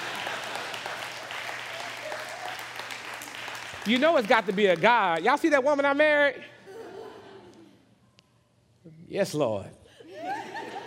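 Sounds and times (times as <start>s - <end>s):
audience applause: 0.0s - 5.6s
speech: 3.9s - 6.5s, 9.1s - 9.8s
laughter: 6.4s - 7.9s, 10.0s - 10.8s.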